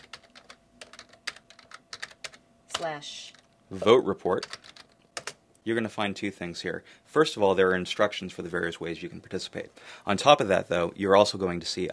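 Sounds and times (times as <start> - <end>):
fingers typing on a computer keyboard: 0.0 - 3.5, 4.3 - 5.4
speech: 2.8 - 4.6, 5.6 - 11.9.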